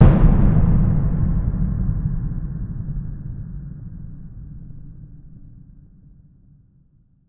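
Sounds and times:
low scary hit: 0.0 - 5.8.

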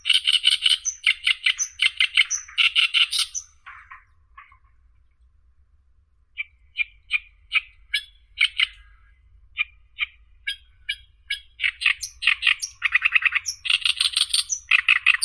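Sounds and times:
oriental reed warbler Acrocephalus orientalis: 0.0 - 4.0, 10.0 - 15.2.

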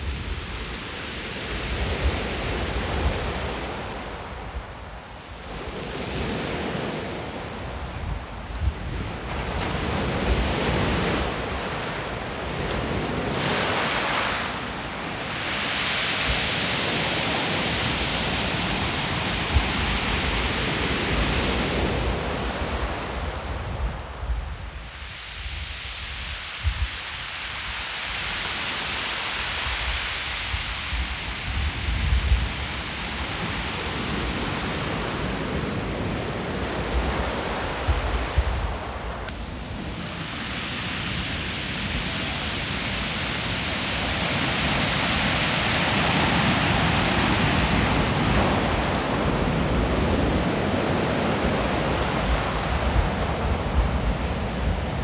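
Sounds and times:
wind on the seashore: 0.0 - 55.0.

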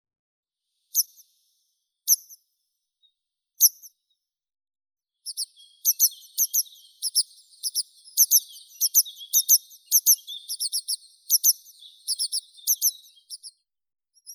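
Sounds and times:
grey wagtail Motacilla cinerea calling: 5.3 - 13.6.

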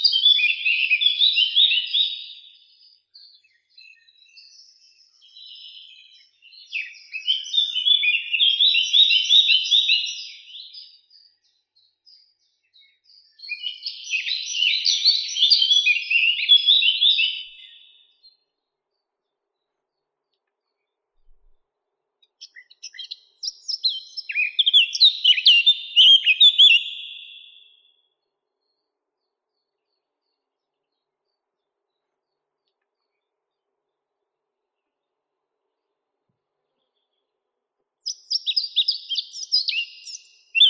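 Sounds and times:
Sylvia atricapilla blackcap singing: 0.0 - 11.0, 12.8 - 18.0, 22.2 - 27.8, 38.0 - 40.6.

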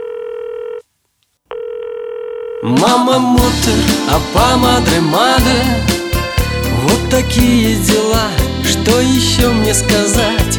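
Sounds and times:
ringing tone of an unanswered phone call: 0.0 - 0.8, 1.5 - 2.8
speech: 2.6 - 6.0, 6.8 - 10.5.

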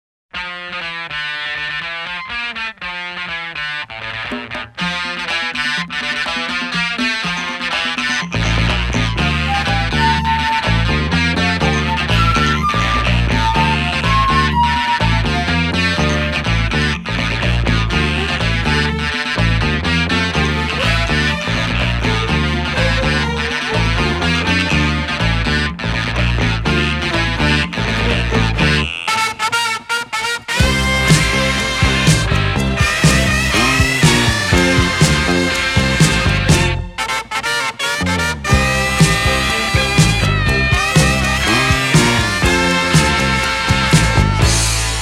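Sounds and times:
instrumental music: 0.4 - 45.0.

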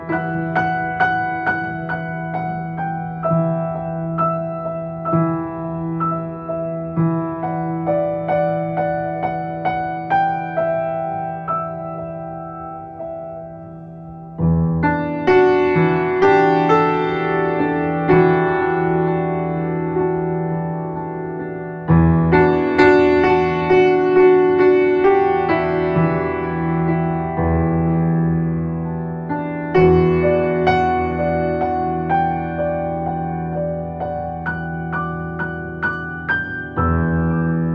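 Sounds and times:
piano: 0.0 - 37.7.

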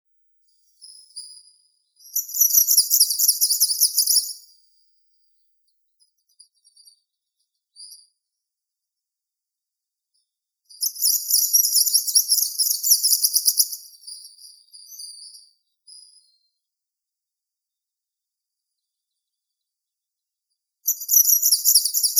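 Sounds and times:
greenish warbler Phylloscopus trochiloides singing: 2.0 - 4.4, 10.8 - 15.4, 20.9 - 22.1.

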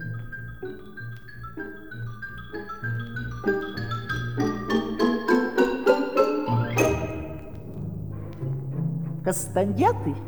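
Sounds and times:
xylophone playing: 0.1 - 7.7
speech: 9.3 - 10.2.

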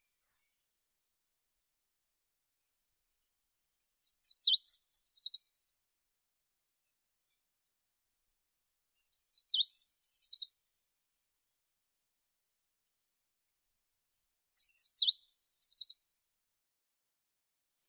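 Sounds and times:
Eurasian treecreeper Certhia familiaris calling: 4.0 - 5.4, 9.0 - 10.5, 14.5 - 15.9.

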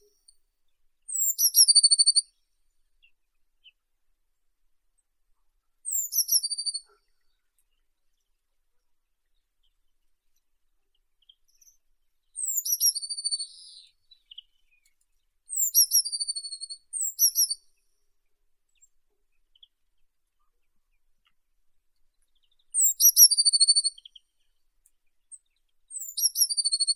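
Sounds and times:
blue tit Cyanistes caeruleus: 1.1 - 2.3, 5.9 - 7.0, 12.4 - 14.9, 15.5 - 17.7, 22.4 - 24.3, 25.4 - 26.9.

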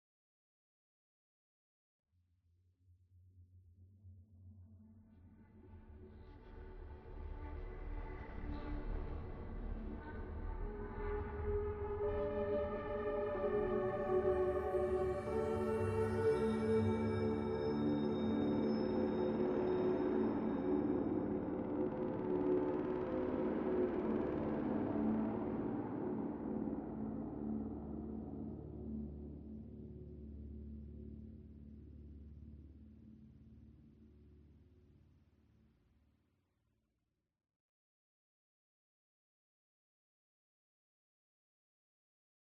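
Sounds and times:
ambient music: 7.4 - 33.4.

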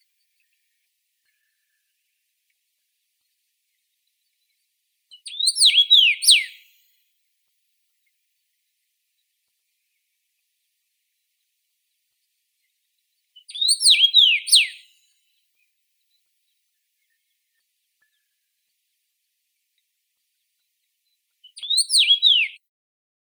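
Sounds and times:
common rosefinch Carpodacus erythrinus: 5.1 - 6.9, 13.4 - 15.1, 21.4 - 22.6.

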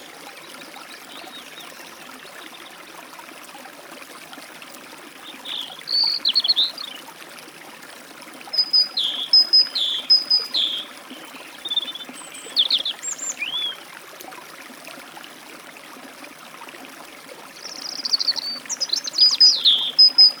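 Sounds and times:
forest stream flowing: 0.0 - 20.3
European robin at a forest stream: 5.2 - 7.0, 8.6 - 13.8, 17.6 - 20.3
great tit at a forest stream: 5.3 - 6.9, 8.6 - 11.0, 11.6 - 13.8, 17.6 - 20.3.

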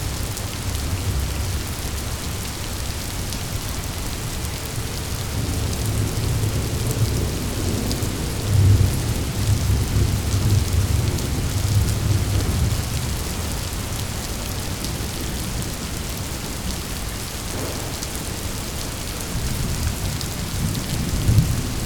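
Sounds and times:
rain: 0.0 - 21.8
thunder rolling: 17.4 - 21.8.

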